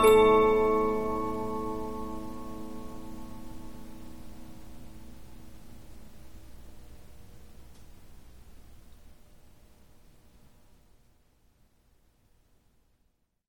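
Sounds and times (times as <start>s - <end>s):
Polyphon 15-inch disc music box playing: 0.0s - 3.4s.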